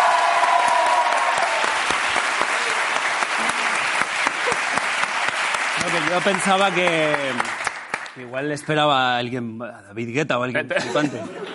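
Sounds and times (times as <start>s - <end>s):
audience applause: 0.0s - 8.9s
speech: 5.8s - 7.6s, 8.2s - 11.5s
laughter: 10.7s - 11.5s.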